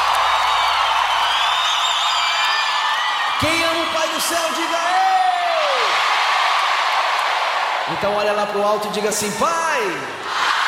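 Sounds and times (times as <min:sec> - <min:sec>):
faint cheers and whoops: 0:00.0 - 0:07.9
large crowd applauding: 0:00.0 - 0:08.5
speech: 0:04.2 - 0:05.2, 0:07.9 - 0:10.4.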